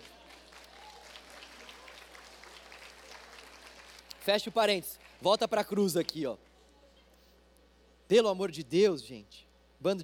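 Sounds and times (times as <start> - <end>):
faint audience applause: 0.0 - 5.6
speech: 4.2 - 6.5, 8.1 - 10.0.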